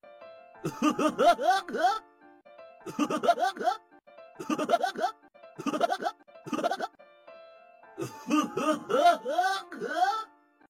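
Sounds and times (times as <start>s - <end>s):
strange laughter: 0.6s - 2.0s, 2.9s - 3.8s, 4.4s - 7.0s, 8.0s - 10.3s.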